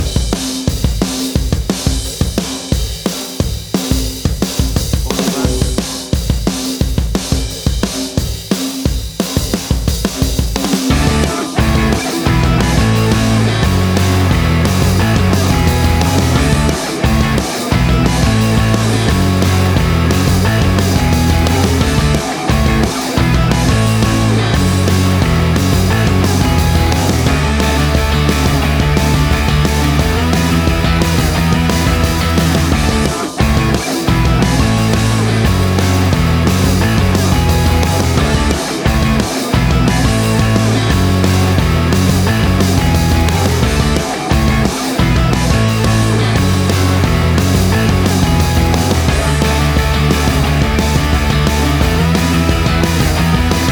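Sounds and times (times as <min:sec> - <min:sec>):
punk rock music: 0:00.0 - 0:53.7.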